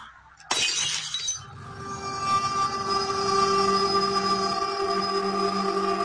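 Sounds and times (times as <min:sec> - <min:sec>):
rumbling hum with ringing tones: 0:00.0 - 0:06.0
object falling and shattering: 0:00.4 - 0:01.5.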